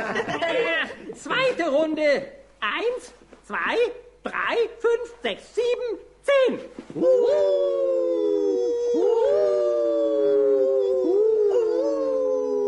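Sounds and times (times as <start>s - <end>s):
speech: 0.1s - 8.2s
three people imitating werewolf, wolf and coyote howls: 7.0s - 12.6s.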